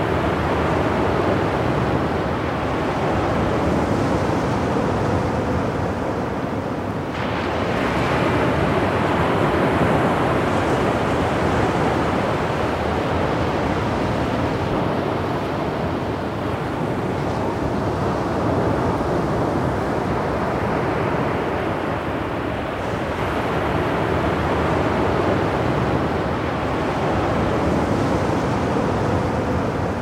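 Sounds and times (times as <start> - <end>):
ocean surf roar: 0.0 - 30.0.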